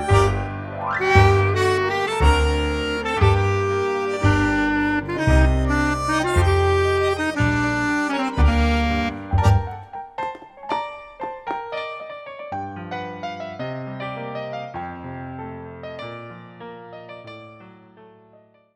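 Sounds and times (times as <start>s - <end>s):
clarinet in G minor: 0.0s - 10.4s.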